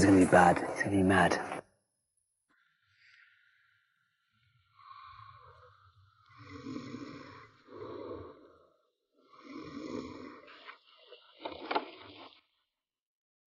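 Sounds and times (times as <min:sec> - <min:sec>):
speech: 0:00.2 - 0:01.5
man snoring asleep in his room: 0:06.3 - 0:08.6, 0:09.2 - 0:10.5.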